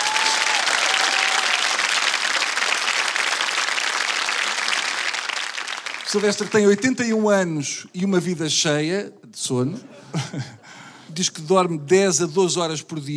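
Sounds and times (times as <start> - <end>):
audience applause: 0.0 - 6.8
speech: 6.1 - 10.6, 11.2 - 13.1
laughter: 9.6 - 10.9.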